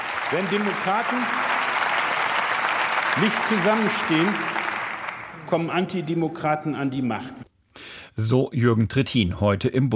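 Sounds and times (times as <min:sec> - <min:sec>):
applause in parliament hall: 0:00.0 - 0:06.1
speech: 0:00.3 - 0:01.5, 0:03.2 - 0:04.6, 0:05.5 - 0:07.4, 0:08.2 - 0:09.9.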